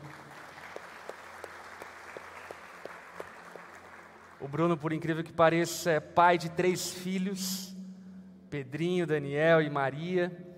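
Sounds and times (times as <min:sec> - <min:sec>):
audience applause: 0:00.0 - 0:04.4
speech: 0:04.4 - 0:07.7, 0:08.5 - 0:10.5.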